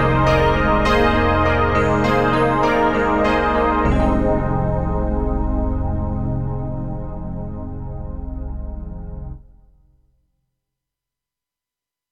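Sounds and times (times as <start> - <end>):
KORG TR-Rack breathy layered piano: 0.0 - 9.4.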